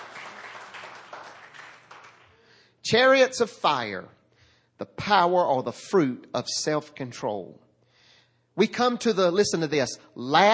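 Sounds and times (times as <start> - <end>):
audience applauding: 0.0 - 2.5
speech: 2.9 - 4.2, 4.8 - 7.6, 8.6 - 10.5.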